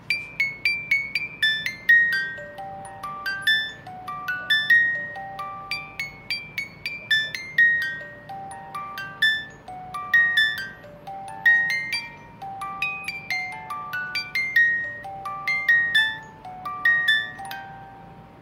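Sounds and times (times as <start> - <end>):
music box: 0.0 - 18.4.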